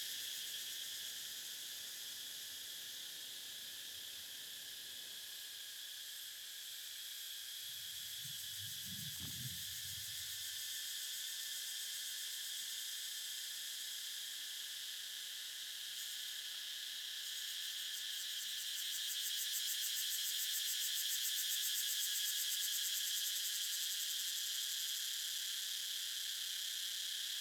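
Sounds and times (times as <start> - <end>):
cicadas in a national park in Vietnam: 0.0 - 27.4.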